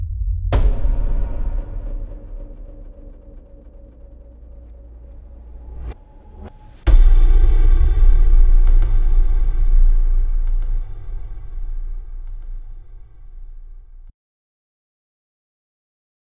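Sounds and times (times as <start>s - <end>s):
big hard low impacts: 0.0s - 5.7s, 6.9s - 14.1s.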